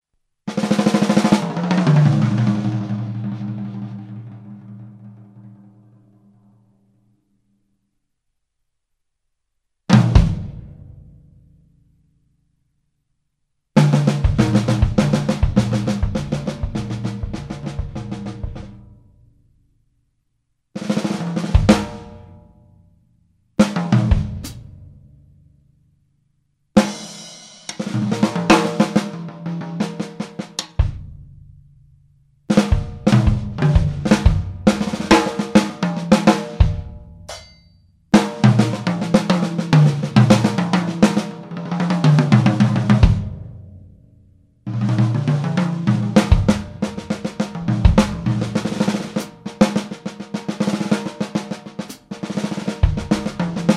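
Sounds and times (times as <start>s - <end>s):
drums and percussion: 0.5s - 5.8s, 9.9s - 10.8s, 13.8s - 18.8s, 20.8s - 22.4s, 23.6s - 24.8s, 26.8s - 31.4s, 32.5s - 43.5s, 44.7s - 53.7s.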